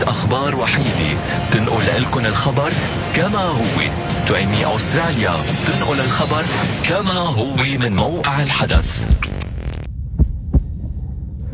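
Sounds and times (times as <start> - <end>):
speech: 0.3 - 9.4
low throbbing hum: 0.6 - 7.0, 8.8 - 11.5
heartbeat of a nurse after being shouted at and threatened: 8.7 - 11.5.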